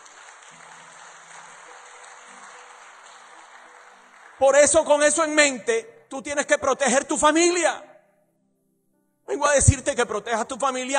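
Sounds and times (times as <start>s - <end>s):
crowd applause: 0.0s - 5.4s
speech: 4.4s - 7.9s, 9.3s - 10.9s.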